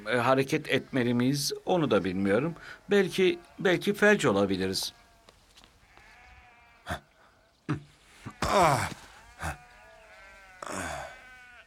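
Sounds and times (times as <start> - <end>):
speech: 0.0 - 5.0, 6.9 - 7.1, 7.7 - 9.6
sheep bleating: 2.6 - 7.2, 8.1 - 11.6.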